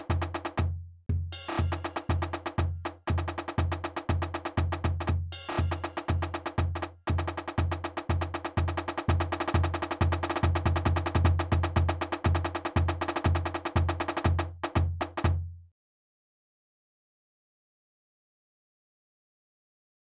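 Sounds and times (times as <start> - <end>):
English-style marching music: 0.0 - 15.4.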